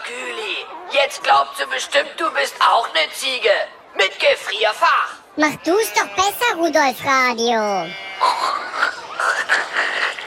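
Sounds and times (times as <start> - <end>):
speech: 0.9 - 8.5
voice imitating pig squealing: 5.4 - 6.6, 7.7 - 10.2.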